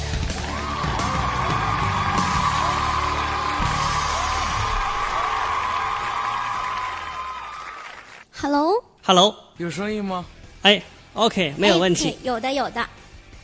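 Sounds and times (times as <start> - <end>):
audience applause and cheering: 0.0 - 8.3
speech: 8.4 - 13.0.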